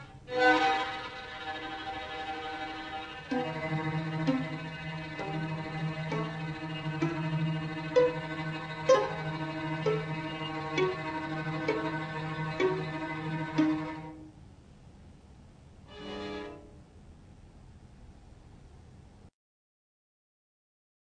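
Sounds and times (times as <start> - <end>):
strings: 0.0 - 14.4, 15.9 - 16.8.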